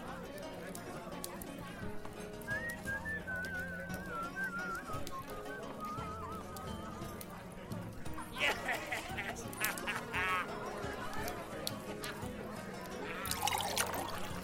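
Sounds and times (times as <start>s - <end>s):
steady murmuring voices in a medieval life scene: 0.0s - 14.4s
wavering whistle: 2.5s - 6.8s
laughter: 8.0s - 14.2s.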